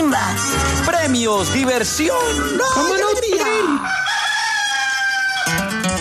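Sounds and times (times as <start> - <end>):
speech: 1.1 - 4.1, 5.5 - 5.8
rooster crowing as a Radio Activa station sound: 3.6 - 5.8.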